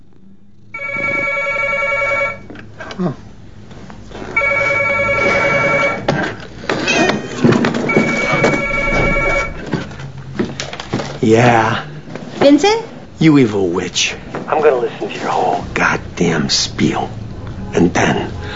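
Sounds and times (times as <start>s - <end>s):
telephone ringing: 0.7s - 2.5s, 4.3s - 6.1s, 7.0s - 9.9s
speech: 3.0s - 3.3s, 11.2s - 18.5s.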